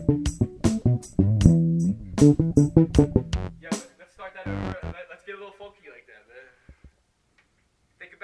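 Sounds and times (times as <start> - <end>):
psychedelic music interlude: 0.0 - 3.7, 4.5 - 5.0.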